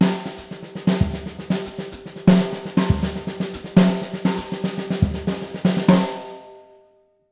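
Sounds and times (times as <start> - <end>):
breakbeat drums: 0.0 - 6.2.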